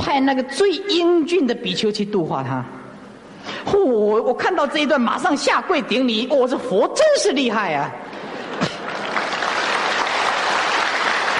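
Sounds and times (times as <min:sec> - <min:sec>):
speech: 0:00.2 - 0:02.8, 0:03.6 - 0:08.1
audience applause: 0:08.6 - 0:11.3.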